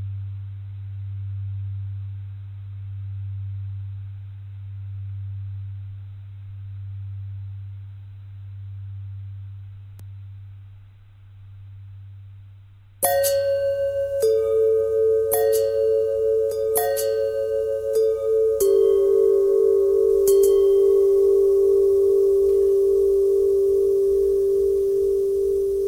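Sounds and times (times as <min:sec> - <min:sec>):
long bending bell tones: 0:13.0 - 0:25.8.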